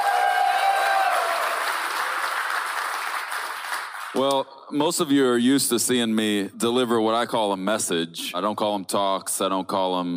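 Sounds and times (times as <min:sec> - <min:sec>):
audience clapping: 0:00.0 - 0:04.5
speech: 0:04.2 - 0:10.1.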